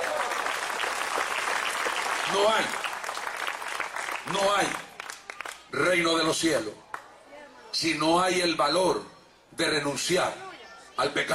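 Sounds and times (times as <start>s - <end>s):
audience applause: 0.0s - 5.7s
speech: 2.3s - 2.8s, 4.3s - 4.8s, 5.8s - 6.8s, 7.8s - 10.4s, 11.0s - 11.3s.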